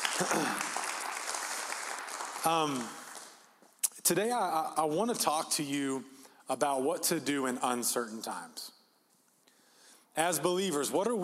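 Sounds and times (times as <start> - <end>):
audience applause: 0.0 - 3.4
speech: 0.2 - 0.8, 2.4 - 3.0, 4.1 - 8.8, 10.2 - 11.2.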